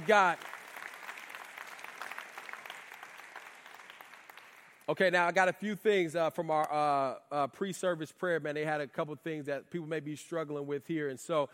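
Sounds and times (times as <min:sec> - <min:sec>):
speech: 0:00.0 - 0:00.5, 0:04.9 - 0:11.5
audience hand clapping: 0:00.0 - 0:05.0.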